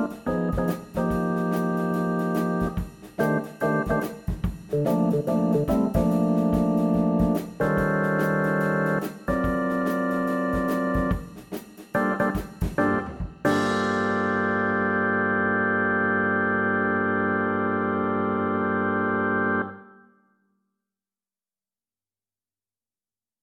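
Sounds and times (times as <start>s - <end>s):
bass trombone playing a shuffle etude: 0.0s - 4.1s, 4.7s - 11.2s, 12.0s - 19.8s
shuffle backing track: 0.0s - 14.0s.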